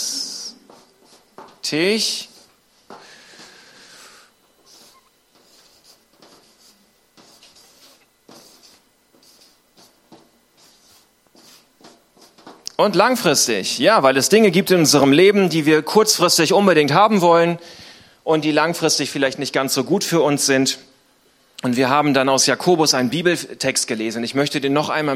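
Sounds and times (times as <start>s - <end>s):
speech: 1.6s - 2.3s, 12.8s - 20.9s, 21.6s - 25.1s
scratchy pen strokes of handwriting: 4.6s - 12.4s.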